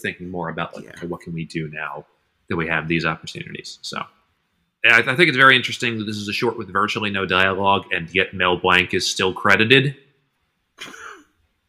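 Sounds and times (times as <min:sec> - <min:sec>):
speech: 0:00.0 - 0:04.2, 0:04.8 - 0:10.0, 0:10.8 - 0:11.0
cough: 0:10.8 - 0:11.3.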